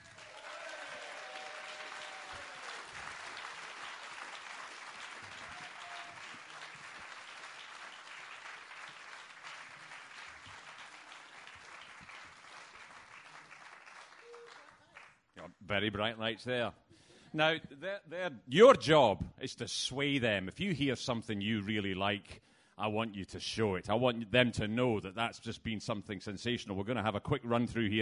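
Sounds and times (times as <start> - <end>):
audience applause welcoming judges at a performance and writing competition: 0.0 - 15.1
speech: 15.7 - 28.0.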